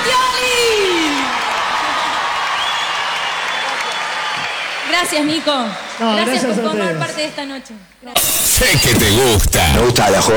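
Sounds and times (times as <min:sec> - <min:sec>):
audience applause and cheering: 0:00.0 - 0:06.8
speech: 0:05.0 - 0:10.3.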